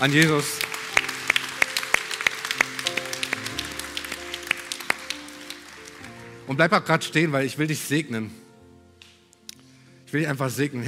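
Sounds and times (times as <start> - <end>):
speech: 0.0 - 0.7, 6.5 - 8.4, 10.1 - 10.8
audience clapping in rhythm: 0.0 - 6.8
sustained keyboard chords: 0.0 - 9.8.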